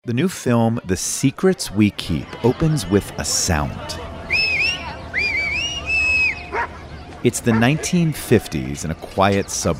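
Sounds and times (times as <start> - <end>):
speech: 0.0 - 4.1, 7.2 - 9.7
murmur: 0.1 - 9.7
man whistling for his dog: 4.3 - 6.4.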